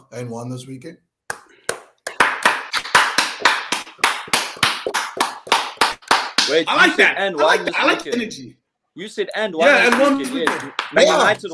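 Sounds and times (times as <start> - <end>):
speech: 0.1 - 1.1, 6.5 - 11.5
sharp loud hand claps: 1.3 - 6.9, 9.6 - 11.5.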